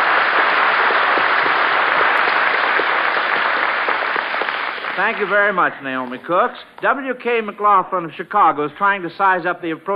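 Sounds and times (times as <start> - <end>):
audience applause: 0.0 - 6.2
speech: 5.0 - 9.9.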